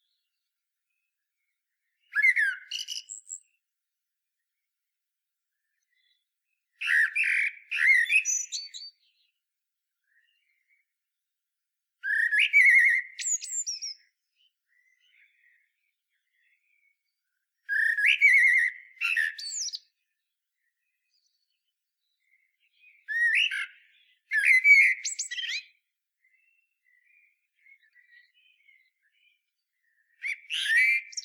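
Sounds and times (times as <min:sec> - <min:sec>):
common blackbird song: 0:02.0 - 0:03.6, 0:06.8 - 0:09.3, 0:12.0 - 0:20.0, 0:20.7 - 0:31.2.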